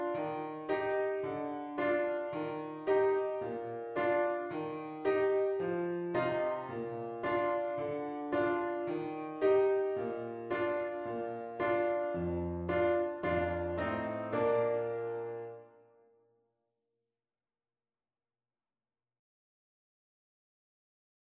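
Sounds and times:
piano intermezzo: 0:00.0 - 0:16.1.

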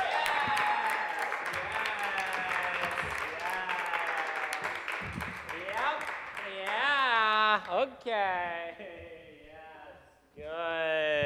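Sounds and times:
audience clapping: 0:00.0 - 0:07.9
speech: 0:08.0 - 0:08.9.

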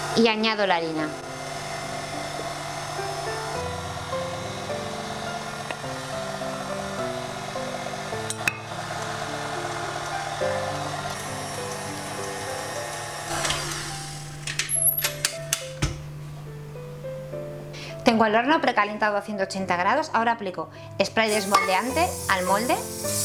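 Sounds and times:
electric mixer beating cake batter: 0:00.0 - 0:14.4, 0:21.3 - 0:23.2
speech: 0:00.2 - 0:01.2, 0:18.2 - 0:23.2.

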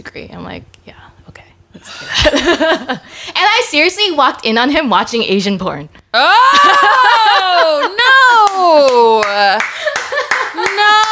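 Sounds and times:
speech: 0:00.0 - 0:01.2, 0:01.8 - 0:07.1
hand clapping: 0:08.3 - 0:11.0.

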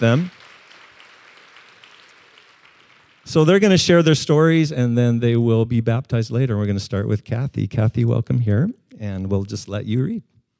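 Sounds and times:
speech: 0:00.0 - 0:00.4, 0:03.3 - 0:10.3
audience clapping in encouragement: 0:00.0 - 0:04.0.

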